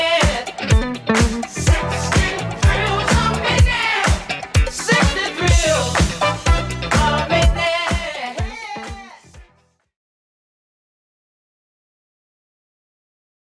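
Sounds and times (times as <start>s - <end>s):
80s drum machine beat: 0.0s - 9.6s.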